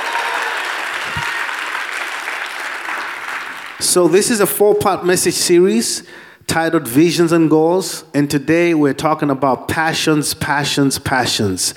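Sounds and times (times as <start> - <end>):
audience clapping: 0.0 - 4.2
speech: 3.8 - 11.7.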